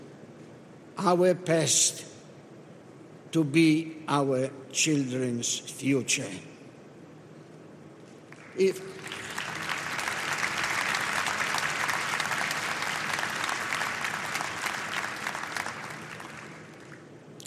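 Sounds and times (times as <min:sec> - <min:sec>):
speech: 0:01.0 - 0:02.1, 0:03.3 - 0:06.5, 0:08.6 - 0:09.0
audience applause: 0:08.4 - 0:17.1.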